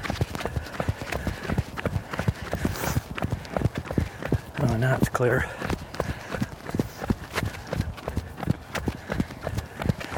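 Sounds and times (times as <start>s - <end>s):
footsteps of someone running on slippery ice: 0.0s - 10.1s
speech: 4.8s - 5.6s.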